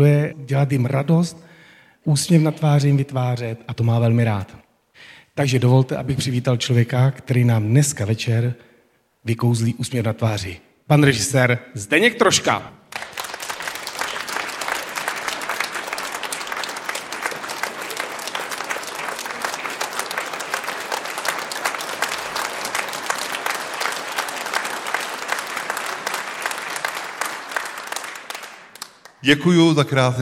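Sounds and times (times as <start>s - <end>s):
speech: 0.0s - 12.8s, 29.2s - 30.1s
audience applause: 12.9s - 29.2s.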